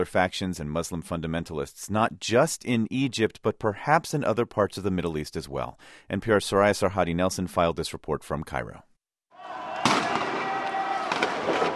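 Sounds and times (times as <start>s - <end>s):
speech: 0.0s - 9.6s
gunfire by security forces: 9.8s - 11.7s.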